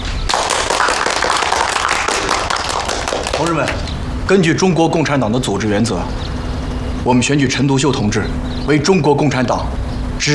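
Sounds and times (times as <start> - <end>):
small group applauding: 0.2 - 3.9
speech: 3.4 - 6.3, 7.0 - 10.3.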